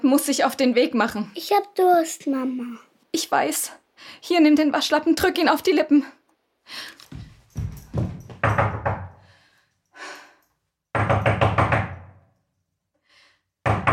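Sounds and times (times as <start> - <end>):
speech: 0.1 - 7.0
knocking on a door: 7.2 - 9.2, 10.9 - 12.3, 13.6 - 13.9.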